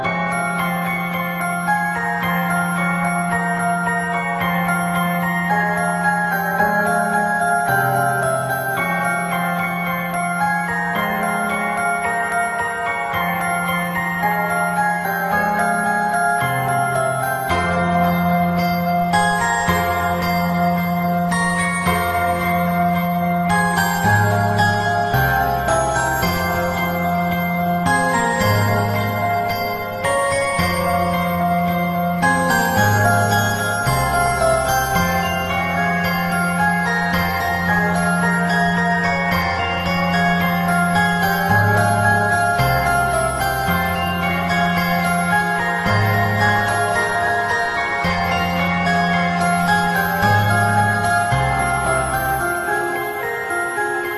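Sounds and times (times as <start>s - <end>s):
background music: 0.0s - 54.1s.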